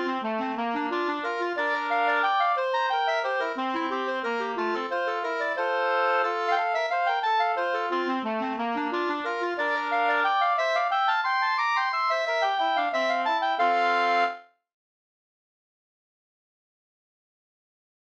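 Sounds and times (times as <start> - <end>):
waltz music: 0.0 - 14.4.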